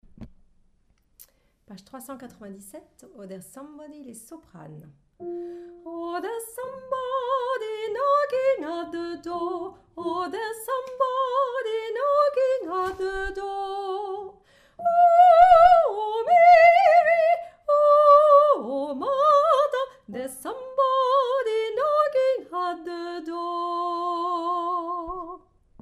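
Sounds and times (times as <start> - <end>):
soprano singing: 5.2 - 25.5.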